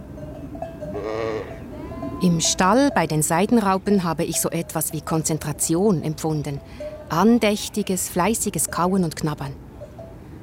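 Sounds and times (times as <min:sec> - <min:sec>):
ewe bleating, calling for her lamb: 0:01.0 - 0:02.1
speech: 0:02.2 - 0:09.6.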